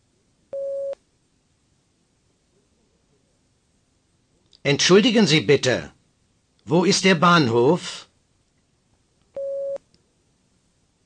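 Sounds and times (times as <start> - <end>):
speech: 4.6 - 6.0, 6.7 - 8.1
beep prompting the listener to speak: 9.4 - 9.8.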